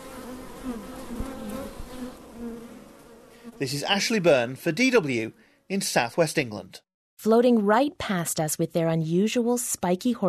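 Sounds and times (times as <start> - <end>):
honeybees buzzing: 0.0 - 5.7
speech: 0.6 - 1.3, 3.5 - 10.2.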